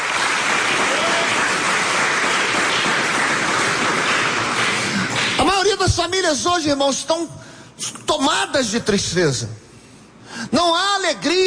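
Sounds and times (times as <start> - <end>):
audience applause: 0.0 - 5.8
speech: 6.0 - 9.6, 10.5 - 11.4.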